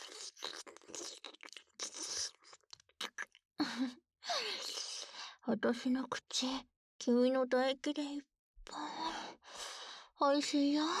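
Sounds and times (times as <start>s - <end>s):
wet kissing sounds: 0.0s - 3.4s
speech: 5.5s - 8.3s, 10.2s - 10.9s.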